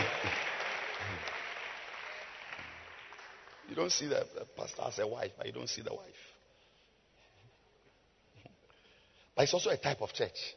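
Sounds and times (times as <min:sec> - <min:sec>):
crowd clapping hands: 0:00.0 - 0:04.2
speech: 0:03.8 - 0:06.3, 0:09.4 - 0:10.5.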